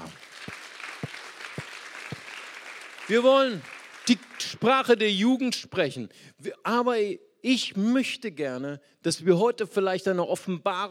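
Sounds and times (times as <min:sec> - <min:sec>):
audience applause: 0:00.0 - 0:04.6
speech: 0:03.1 - 0:10.8.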